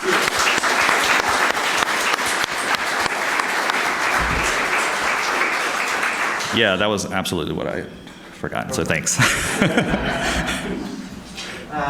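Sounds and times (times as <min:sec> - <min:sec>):
audience applause: 0:00.0 - 0:06.6
speech: 0:06.6 - 0:10.9
laughter: 0:09.1 - 0:11.2.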